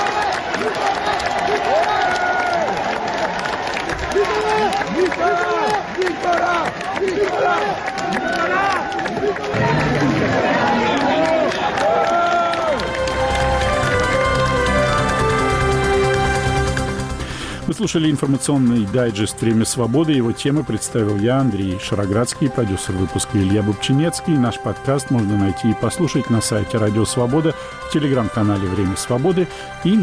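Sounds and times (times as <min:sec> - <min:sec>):
large crowd of supporters applauding and cheering: 0:00.0 - 0:30.0
voices shouting: 0:04.1 - 0:15.4
music: 0:12.6 - 0:30.0
speech: 0:17.8 - 0:30.0.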